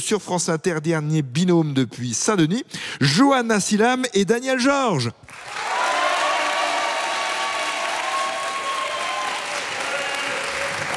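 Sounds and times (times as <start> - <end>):
speech: 0.0 - 5.6
studio audience applause at a quiz game taping in Saint-Denis: 5.3 - 10.9
faint cheering: 5.4 - 10.9.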